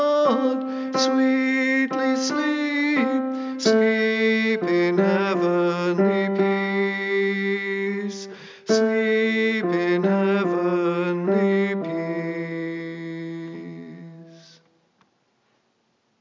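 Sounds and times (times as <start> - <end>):
tenor voice singing: 0.0 - 14.6.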